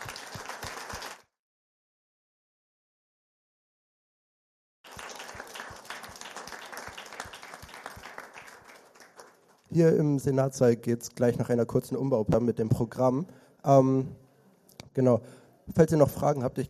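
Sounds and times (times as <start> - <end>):
audience applause: 0.0 - 1.2, 4.9 - 9.6
speech: 9.8 - 14.2, 15.0 - 16.6.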